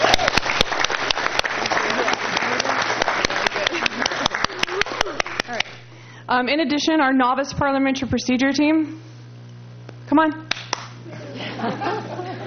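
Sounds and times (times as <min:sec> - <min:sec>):
audience applauding: 0:00.0 - 0:05.9
laughter: 0:01.5 - 0:05.6, 0:11.0 - 0:12.4
speech: 0:06.3 - 0:09.0, 0:10.1 - 0:10.4, 0:11.6 - 0:11.9.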